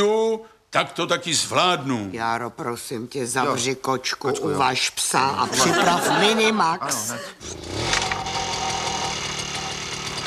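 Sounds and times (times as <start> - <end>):
speech: 0.0 - 8.2
laughter: 5.4 - 7.4
small lawnmower engine starting and running: 7.4 - 10.2.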